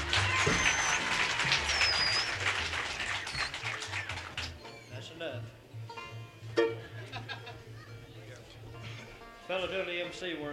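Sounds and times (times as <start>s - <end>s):
laughter: 0.0s - 4.6s, 6.6s - 8.4s
audience applause: 0.0s - 4.7s
speech: 10.2s - 10.5s.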